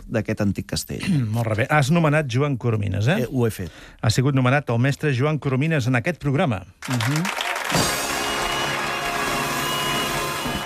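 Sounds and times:
speech: 0:00.1 - 0:08.0
ovation applause: 0:06.8 - 0:10.6.

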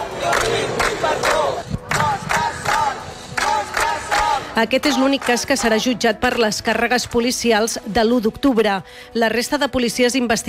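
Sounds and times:
crowd shouting support outside courthouse: 0:00.0 - 0:06.0
speech: 0:04.6 - 0:10.4.

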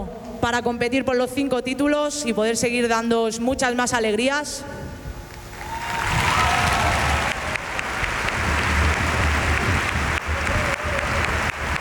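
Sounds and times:
speech: 0:00.4 - 0:04.9
audience applause: 0:05.5 - 0:11.7.

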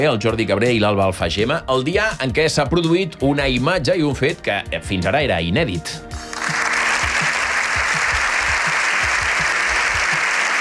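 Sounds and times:
speech: 0:00.0 - 0:06.3
applause in parliament: 0:06.2 - 0:10.6.

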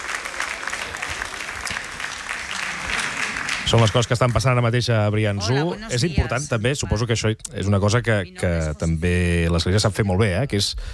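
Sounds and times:
applause in a prison as the Pope hands an inmate a rosary: 0:00.0 - 0:04.8
speech: 0:03.7 - 0:10.9.

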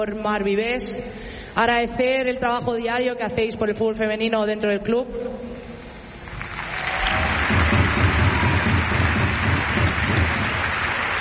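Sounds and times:
speech: 0:00.0 - 0:05.7
stadium crowd applauding: 0:06.2 - 0:11.1.

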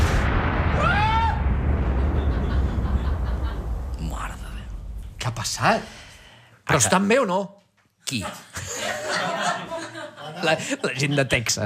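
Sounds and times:
space shuttle explosion breaking apart before landing: 0:00.0 - 0:06.3
laughter: 0:02.2 - 0:03.8, 0:08.5 - 0:11.2
speech: 0:05.4 - 0:06.0, 0:06.7 - 0:08.8, 0:10.4 - 0:11.6.

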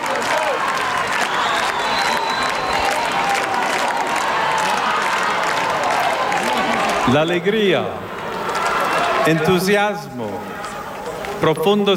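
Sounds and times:
crowd shouting: 0:00.0 - 0:09.5
large crowd applauding: 0:00.0 - 0:11.9
speech: 0:07.1 - 0:08.1, 0:09.2 - 0:10.4, 0:11.4 - 0:11.9.

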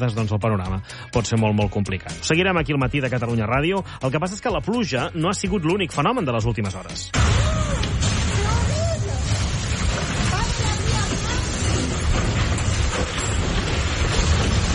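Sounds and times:
speech: 0:00.0 - 0:08.0
tornado roaring: 0:07.2 - 0:14.7.

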